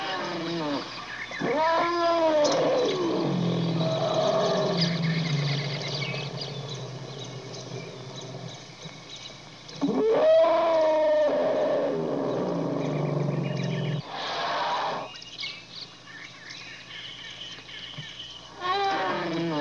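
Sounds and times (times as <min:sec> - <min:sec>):
elephant trumpeting and rumbling: 0:00.0 - 0:09.0, 0:09.8 - 0:15.1
birds chirping: 0:00.0 - 0:19.5.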